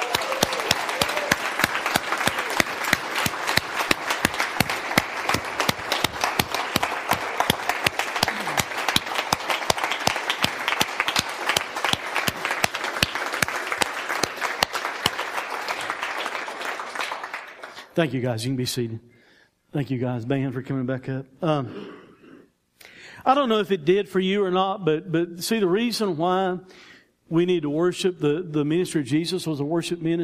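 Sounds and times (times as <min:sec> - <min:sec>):
crowd applause: 0:00.0 - 0:17.9
speech: 0:18.0 - 0:19.1, 0:19.7 - 0:21.8, 0:23.2 - 0:30.2.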